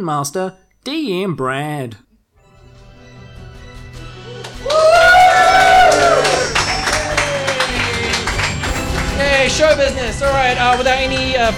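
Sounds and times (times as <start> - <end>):
speech: 0.0 - 2.0, 9.2 - 11.5
audience whooping cheers: 4.3 - 8.6
audience applause: 4.3 - 9.7.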